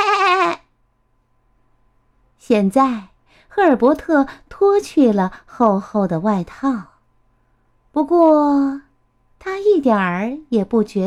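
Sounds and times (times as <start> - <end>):
sheep bleating: 0.0 - 0.6
speech: 2.5 - 6.9, 8.0 - 8.8, 9.4 - 11.0.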